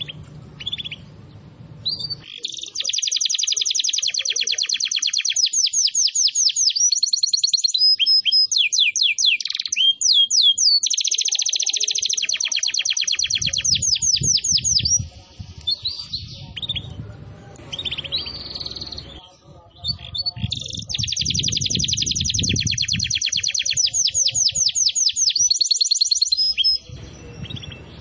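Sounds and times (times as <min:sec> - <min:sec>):
canary song: 0:00.0 - 0:27.9.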